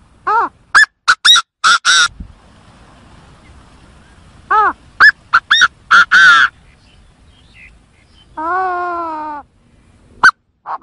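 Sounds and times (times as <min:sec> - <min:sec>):
Chinese francolin calling: 0:00.3 - 0:02.2, 0:03.4 - 0:09.5.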